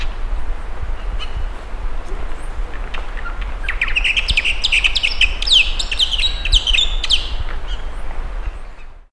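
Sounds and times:
steady low rumbling noise: 0:00.0 - 0:09.0
birds singing: 0:01.0 - 0:01.5, 0:02.3 - 0:09.0.

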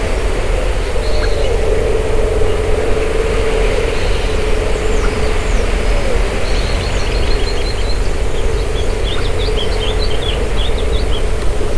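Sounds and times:
low rumble: 0:00.0 - 0:11.7
bird chirping: 0:01.0 - 0:01.6, 0:03.9 - 0:11.3.

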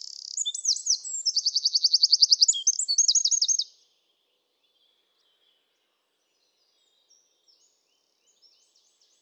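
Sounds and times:
Eurasian wren song, Troglodytes troglodytes: 0:00.0 - 0:03.7.

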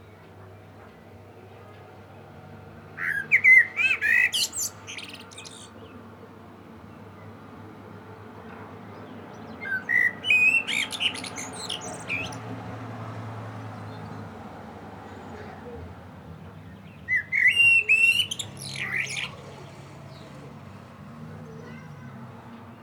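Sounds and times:
Common blackbird song: 0:03.0 - 0:05.9, 0:09.5 - 0:12.7, 0:16.8 - 0:20.6.

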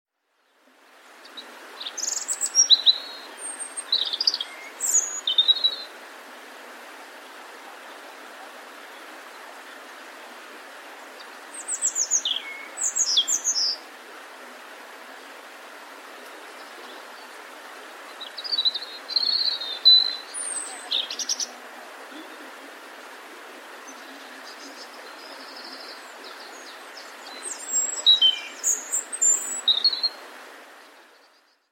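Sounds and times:
soft background hiss: 0:00.2 - 0:31.7
European robin singing: 0:01.3 - 0:05.9, 0:11.2 - 0:13.8, 0:18.1 - 0:22.9, 0:23.7 - 0:30.2.

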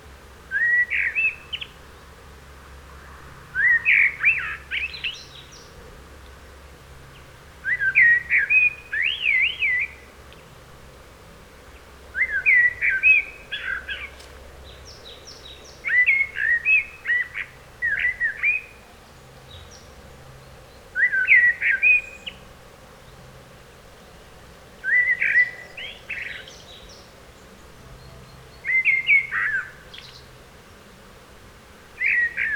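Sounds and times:
Eurasian blackbird singing: 0:00.5 - 0:01.8, 0:03.6 - 0:05.7, 0:07.6 - 0:10.1, 0:12.1 - 0:19.9, 0:20.7 - 0:22.4, 0:24.8 - 0:30.3, 0:32.0 - 0:32.5.

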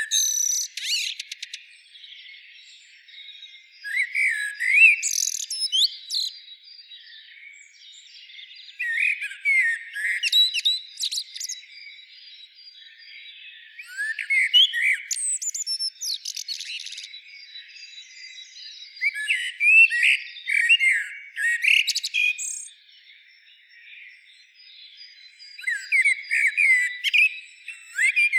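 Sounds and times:
common blackbird singing: 0:00.0 - 0:28.3.

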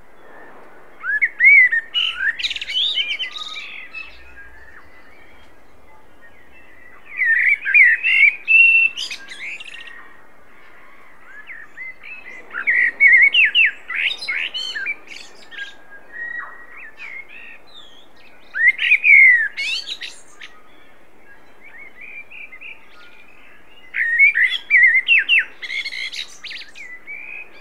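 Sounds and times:
common blackbird singing: 0:01.0 - 0:27.6.

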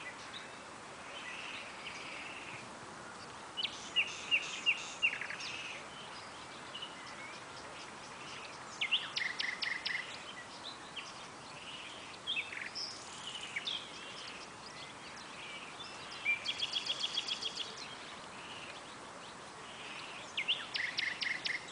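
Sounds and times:
Common nightingale Luscinia megarhynchos singing: 0:00.0 - 0:21.6.

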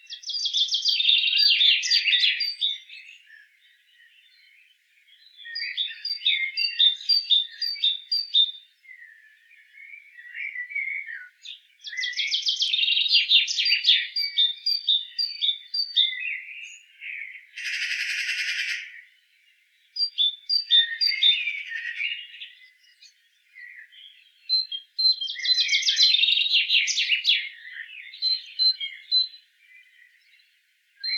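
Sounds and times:
great tit calls: 0:00.0 - 0:03.2, 0:05.5 - 0:08.5, 0:11.2 - 0:19.2, 0:20.0 - 0:30.2.

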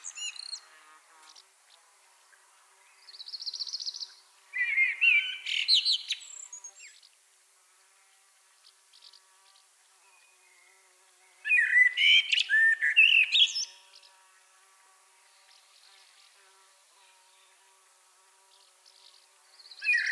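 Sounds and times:
common blackbird Turdus merula singing: 0:04.6 - 0:06.9, 0:11.5 - 0:13.8, 0:19.8 - 0:20.0.

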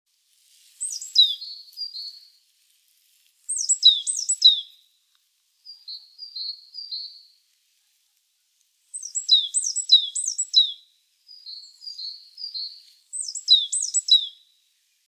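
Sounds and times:
great tit calling: 0:00.8 - 0:02.1, 0:03.5 - 0:04.7, 0:09.0 - 0:10.8, 0:11.4 - 0:14.4.

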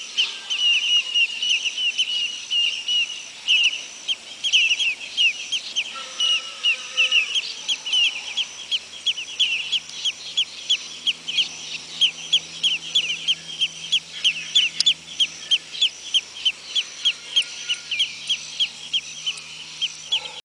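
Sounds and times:
bird giving high thin chirps: 0:00.0 - 0:20.4
faint low hum: 0:04.1 - 0:20.4.

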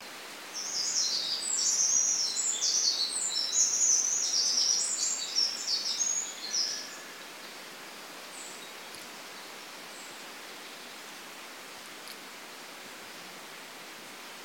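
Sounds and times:
soft hiss: 0:00.0 - 0:14.4
Eurasian wren trilling song: 0:00.6 - 0:07.2.

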